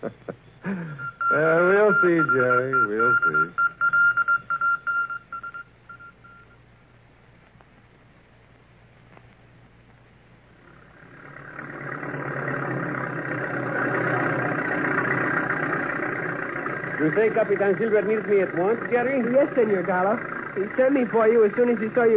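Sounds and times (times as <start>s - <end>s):
bulldozer engine rumble while clearing trees: 0.0s - 22.1s
short beeping tones: 0.9s - 6.6s
speech: 1.4s - 3.7s, 17.0s - 22.1s.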